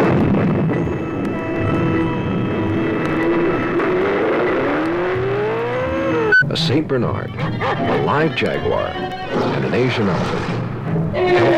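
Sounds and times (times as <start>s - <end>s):
road noise: 0.0s - 11.0s
1973 Datsun 240Z sports car driving: 0.9s - 6.4s
speech: 6.7s - 11.5s.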